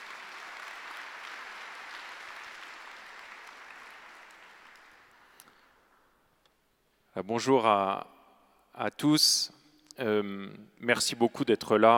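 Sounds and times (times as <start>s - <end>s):
audience applause: 0.0s - 5.4s
speech: 7.2s - 8.2s, 8.8s - 11.9s.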